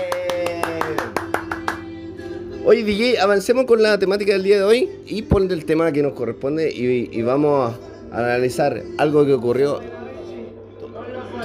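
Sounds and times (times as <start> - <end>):
applause: 0.0 - 1.9
speech: 2.7 - 10.0.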